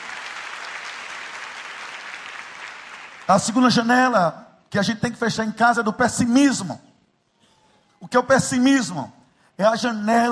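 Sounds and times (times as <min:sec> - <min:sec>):
audience applause: 0:00.0 - 0:03.5
speech: 0:03.3 - 0:06.9, 0:08.1 - 0:10.3.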